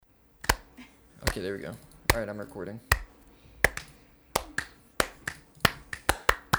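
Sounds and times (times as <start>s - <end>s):
hands clapping for recording sync: 0.1s - 6.5s
speech: 1.3s - 3.0s.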